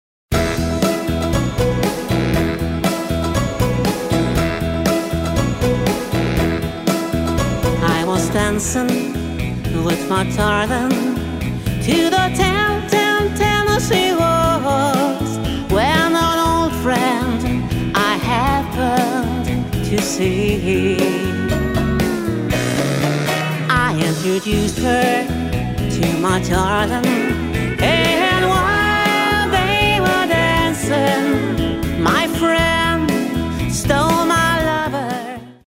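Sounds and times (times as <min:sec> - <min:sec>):
country parlor music: 0:00.3 - 0:35.6.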